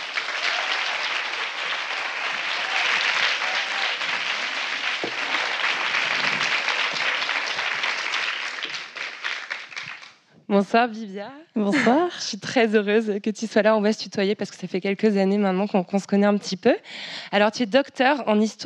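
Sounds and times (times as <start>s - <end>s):
audience applause welcoming a historian onstage: 0.0s - 10.2s
speech: 10.5s - 18.6s.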